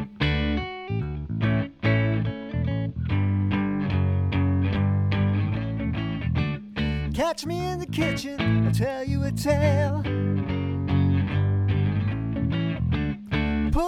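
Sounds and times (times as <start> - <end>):
bass line: 0.0 - 13.8
strummed guitar chords: 0.0 - 13.8
speech: 7.2 - 10.2.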